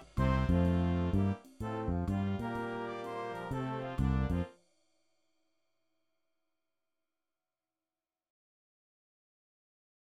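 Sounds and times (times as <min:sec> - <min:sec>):
fugue on a jazz theme: 0:00.0 - 0:04.5.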